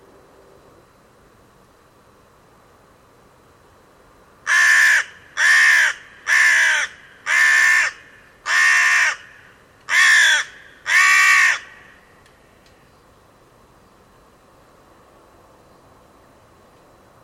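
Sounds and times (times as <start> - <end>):
bird calling hoarsely: 4.5 - 12.1.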